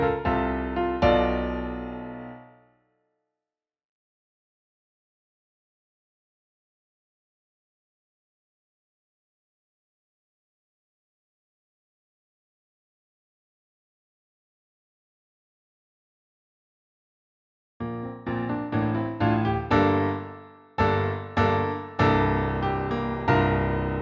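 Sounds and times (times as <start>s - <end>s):
piano track: 0.0s - 2.8s, 17.8s - 24.0s.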